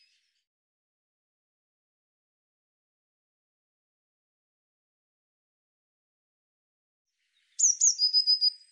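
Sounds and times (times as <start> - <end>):
Eurasian blue tit calls: 7.6 - 8.6.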